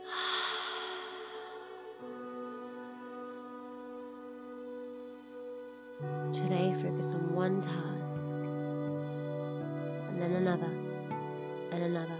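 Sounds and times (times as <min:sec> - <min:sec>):
big deep breath in and out: 0:00.0 - 0:02.0
low sustained musical drone: 0:00.0 - 0:12.1
speech: 0:06.0 - 0:08.4, 0:10.2 - 0:10.8, 0:11.7 - 0:12.1.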